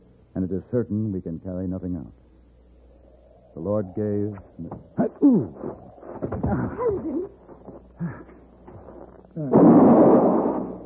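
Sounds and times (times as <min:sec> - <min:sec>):
speech: 0:00.4 - 0:02.2, 0:03.6 - 0:08.3, 0:09.4 - 0:10.4
rifle shot: 0:09.5 - 0:10.8.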